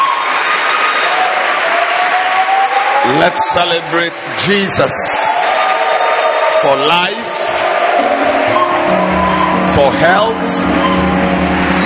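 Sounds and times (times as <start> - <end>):
audience clapping: 0.0 - 11.8
faint high cheer: 0.0 - 11.8
speech: 3.1 - 5.5, 6.6 - 7.4, 9.8 - 11.3.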